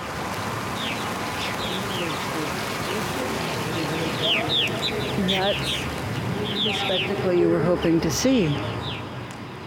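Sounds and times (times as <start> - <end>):
hundreds of purple martins arriving to roost: 0.7 - 7.5
speech: 5.3 - 6.0, 6.7 - 8.8.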